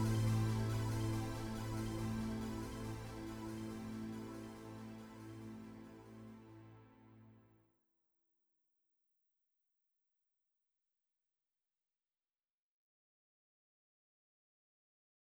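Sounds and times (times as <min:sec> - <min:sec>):
synthetic ambience: 0:00.0 - 0:06.8.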